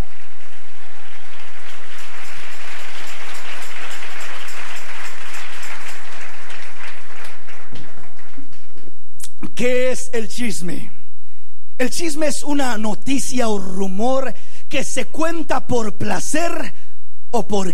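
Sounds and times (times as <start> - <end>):
audience applauding: 0.0 - 9.0
speech: 9.6 - 11.0, 11.8 - 17.7.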